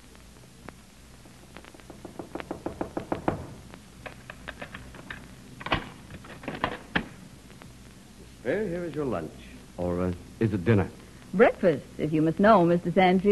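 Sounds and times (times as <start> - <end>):
knock on a door: 1.7 - 3.6
speech: 8.5 - 13.3.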